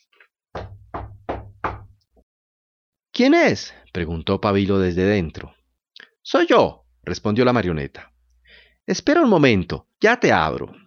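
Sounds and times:
knocking on a house door: 0.5s - 2.0s
speech: 3.2s - 5.6s, 6.3s - 8.1s, 8.9s - 10.8s.

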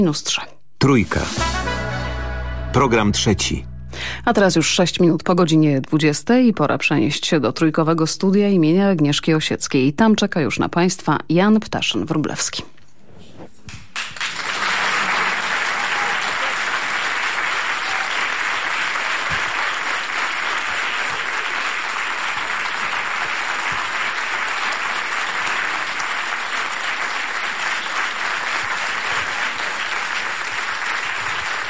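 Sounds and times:
speech: 0.0s - 1.8s, 2.8s - 12.7s
studio audience applause: 14.0s - 31.6s.

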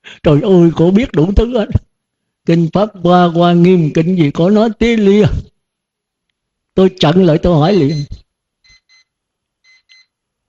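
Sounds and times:
speech: 0.2s - 1.8s, 2.4s - 5.5s, 6.8s - 8.2s
alarm clock beeping in bright high-pitched electronic tones: 7.8s - 10.1s.

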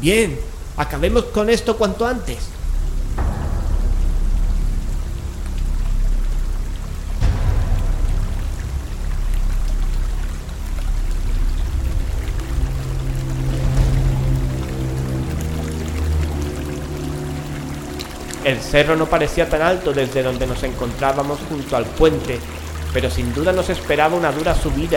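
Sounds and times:
speech: 0.0s - 2.6s, 18.5s - 24.9s
furious rushing river at a bridge below a hill: 0.0s - 24.9s
heavy rain: 0.0s - 24.9s
low droning hum: 1.9s - 24.9s.

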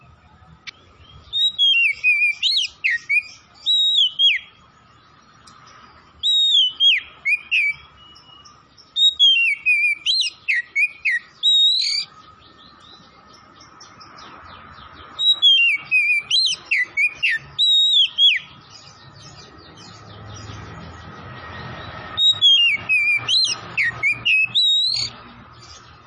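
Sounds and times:
Oriental magpie-robin song: 1.1s - 4.6s, 6.2s - 13.0s, 15.2s - 20.0s, 22.2s - 25.7s.

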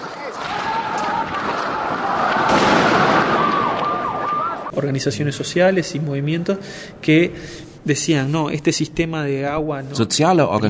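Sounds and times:
dense roaring crowd of shouting protesters: 0.0s - 4.7s
gunshots during street protest: 0.0s - 4.7s
speech: 4.8s - 10.6s.

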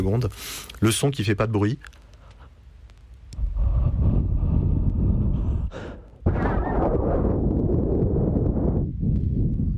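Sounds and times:
speech: 0.0s - 2.0s
blowing on a microphone without its windscreen: 3.4s - 9.7s.

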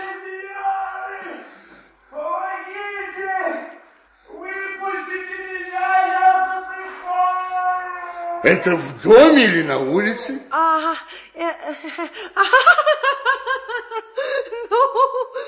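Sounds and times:
people shouting: 0.0s - 1.6s, 2.2s - 9.8s
people crying out: 0.0s - 10.3s
speech: 8.4s - 15.4s
laughter: 11.5s - 15.4s.

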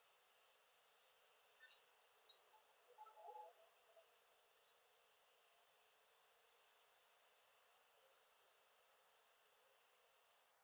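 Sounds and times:
palm tanager Tangara palmarum calling in shrill buzzy chirps: 0.0s - 10.5s.

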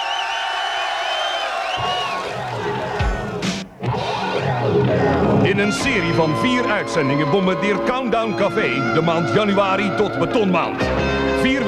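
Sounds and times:
whistles: 0.0s - 2.4s
crowd clapping for two men: 0.0s - 3.7s
crowd cheering and whooping: 0.0s - 5.4s
speech: 4.9s - 11.6s.

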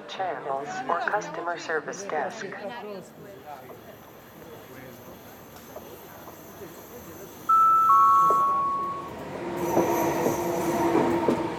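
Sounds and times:
speech: 0.1s - 3.9s
train at Manarola railway station platform in Riomaggiore, Italy: 3.1s - 11.5s
two-tone electronic chime: 7.5s - 9.2s.

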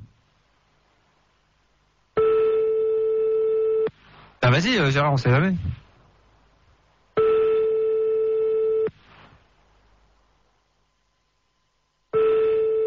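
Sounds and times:
telephone ringing tone on the line: 2.2s - 3.9s, 7.2s - 8.9s, 12.1s - 12.8s
speech: 4.6s - 5.8s.

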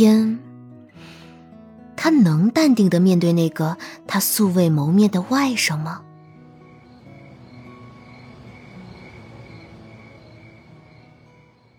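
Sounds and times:
speech: 0.0s - 0.4s, 2.0s - 6.1s
subway train running: 7.4s - 10.5s.

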